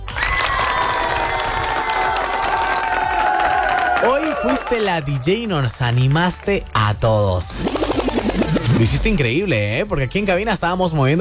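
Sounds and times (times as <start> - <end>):
cheering: 0.0 - 6.2
applause: 0.0 - 7.1
speech: 4.0 - 11.1.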